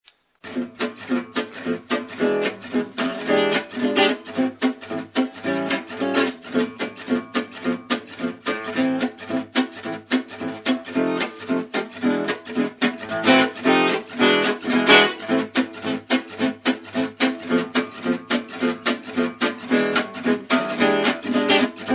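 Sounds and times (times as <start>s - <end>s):
rhythm: 0.5s - 21.9s.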